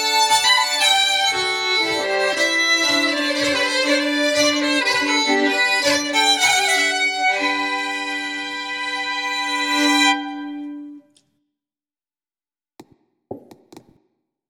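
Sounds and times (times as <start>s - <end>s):
Swedish bagpipe playing a polska: 0.0s - 11.0s.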